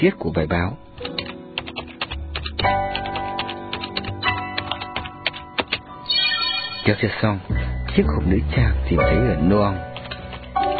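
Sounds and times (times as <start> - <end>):
speech: 0.0 - 0.9, 6.8 - 9.9
fingers typing on a computer keyboard: 1.0 - 5.9, 9.9 - 10.7.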